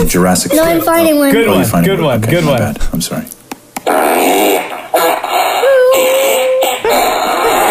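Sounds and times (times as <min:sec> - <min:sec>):
speech: 0:00.1 - 0:03.4
fart sound effect: 0:03.8 - 0:07.6.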